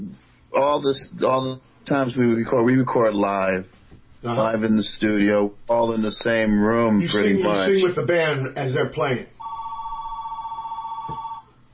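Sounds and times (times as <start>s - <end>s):
speech: 0.6s - 9.4s
telephone ringing with an electronic trill: 9.4s - 11.6s.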